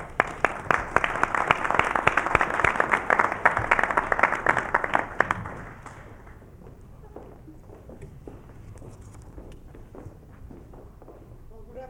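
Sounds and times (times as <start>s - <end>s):
audience applause welcoming performers: 0.0s - 6.4s.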